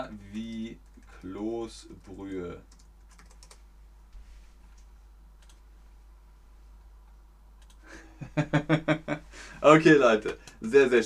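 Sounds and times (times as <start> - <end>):
speech: 0.0 - 2.8, 8.3 - 11.0
typing on a keyboard: 1.9 - 3.6, 4.8 - 5.6, 7.6 - 7.8
laughter: 8.2 - 9.2.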